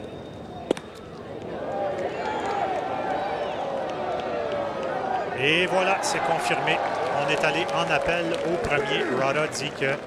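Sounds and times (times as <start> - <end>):
crowd coming alive, cheering: 0.5 - 10.0
speech: 5.4 - 10.0.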